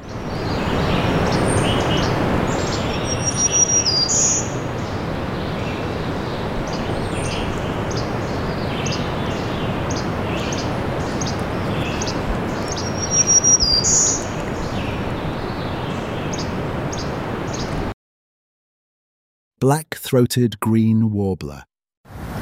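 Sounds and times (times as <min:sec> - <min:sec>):
Bobolink song: 0:00.3 - 0:17.8
speech: 0:19.6 - 0:22.3.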